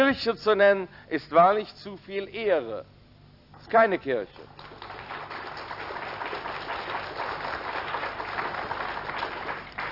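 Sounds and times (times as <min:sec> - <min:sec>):
speech: 0:00.1 - 0:03.0, 0:03.6 - 0:04.7
audience applause thinning out: 0:04.4 - 0:09.8.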